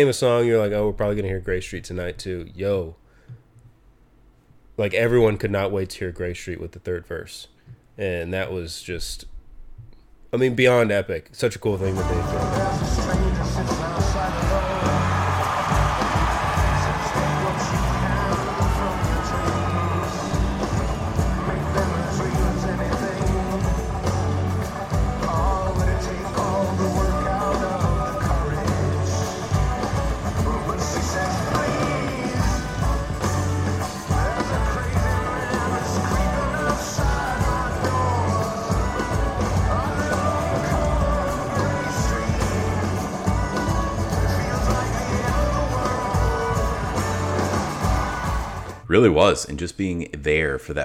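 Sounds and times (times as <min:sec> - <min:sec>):
speech: 0:00.0 - 0:03.4, 0:04.8 - 0:09.3, 0:10.3 - 0:13.2, 0:49.0 - 0:50.8
concert crowd cheering: 0:12.1 - 0:48.8.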